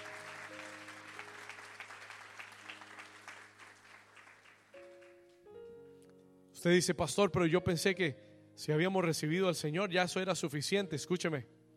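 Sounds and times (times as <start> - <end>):
audience applause: 0.0 - 5.2
speech: 6.6 - 11.6.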